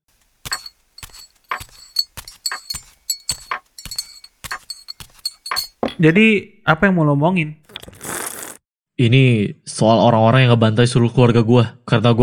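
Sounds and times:
cups clinking while coffee is prepared: 0.0s - 6.0s
speech: 6.0s - 7.6s, 9.0s - 12.2s.

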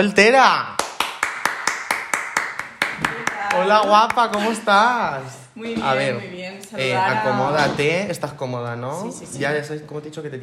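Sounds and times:
speech: 0.0s - 0.8s, 3.5s - 10.4s
hand claps: 0.8s - 4.6s.

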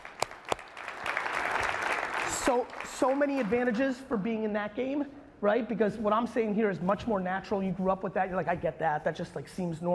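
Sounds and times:
audience applause: 0.0s - 3.8s
speech: 2.5s - 9.9s.

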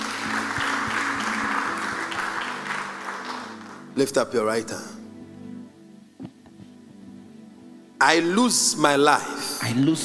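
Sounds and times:
audience applause: 0.0s - 4.0s
speech: 4.0s - 5.0s, 8.0s - 10.0s.

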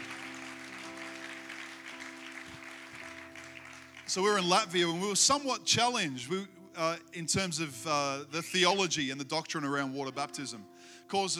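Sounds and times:
audience cheering and applauding: 0.0s - 4.6s
speech: 4.1s - 11.3s.

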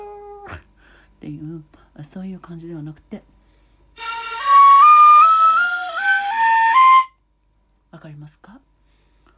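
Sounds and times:
shinobue bamboo flute playing festival scale: 0.0s - 0.6s, 4.0s - 7.2s
speech: 1.2s - 3.3s, 8.2s - 8.6s.

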